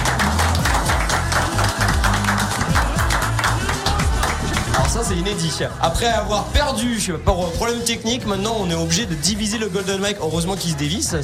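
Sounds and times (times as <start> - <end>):
applause: 0.0 - 5.3
speech: 5.0 - 11.2.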